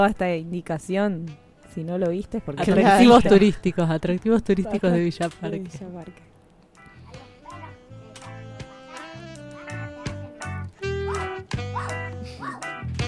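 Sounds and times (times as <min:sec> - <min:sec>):
speech: 0:00.0 - 0:06.3
dogs barking: 0:09.6 - 0:12.8.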